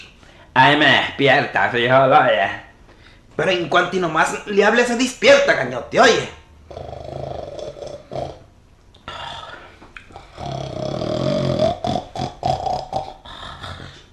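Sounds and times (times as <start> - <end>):
speech: 0.6 - 2.6, 3.4 - 6.9
person snoring: 6.7 - 14.1.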